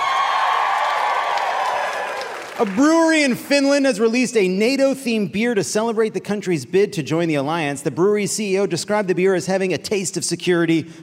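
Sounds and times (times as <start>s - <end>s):
audience applause: 0.0s - 3.5s
speech: 2.6s - 11.0s.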